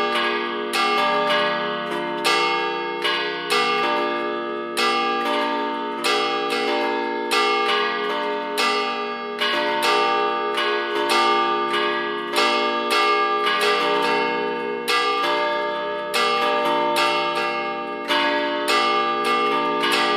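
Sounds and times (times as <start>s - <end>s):
used multi-voice church bells ringing in d1 f1 g1: 0.0s - 20.1s.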